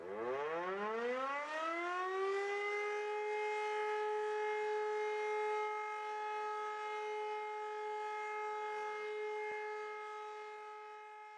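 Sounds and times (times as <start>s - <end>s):
all-clear siren tone: 0.0s - 11.3s.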